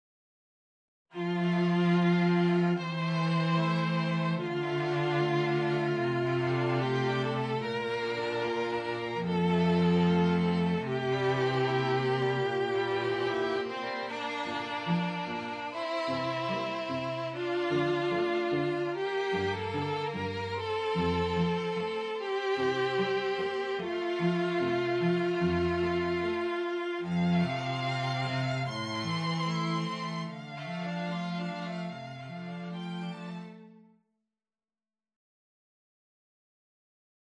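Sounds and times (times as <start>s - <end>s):
cello part in a quintet: 1.1s - 33.9s.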